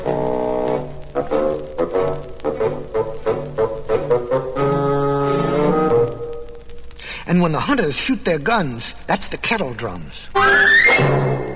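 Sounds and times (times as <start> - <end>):
low bassoon playing a lumbering melody: 0.0 - 6.4, 10.4 - 11.4
speech: 7.4 - 11.2.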